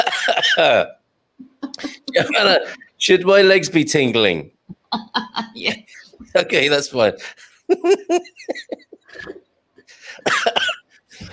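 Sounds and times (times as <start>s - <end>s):
person coughing: 0.0s - 0.9s, 1.8s - 2.8s, 10.2s - 11.3s
speech: 0.6s - 9.4s
laughter: 1.7s - 2.8s, 7.7s - 9.4s.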